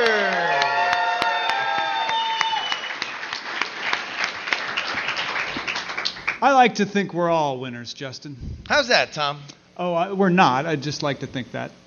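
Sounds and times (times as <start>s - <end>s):
audience applause: 0.0s - 6.5s
speech: 6.5s - 11.8s.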